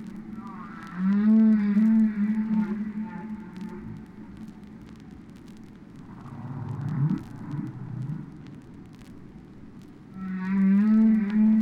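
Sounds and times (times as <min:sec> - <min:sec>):
crackling background: 0:00.0 - 0:11.5
whale song: 0:00.4 - 0:04.0, 0:10.2 - 0:11.5.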